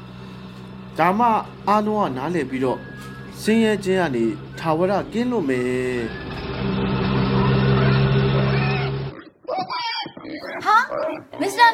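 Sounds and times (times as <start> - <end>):
steady drone: 0.0 - 9.2
speech: 1.0 - 6.8
pigs grunting and oinking in a village: 8.6 - 11.7.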